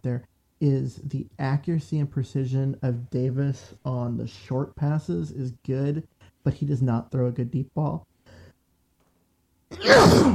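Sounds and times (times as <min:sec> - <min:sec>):
speech: 0:00.0 - 0:08.1, 0:09.7 - 0:10.3
person sneezing: 0:09.7 - 0:10.3.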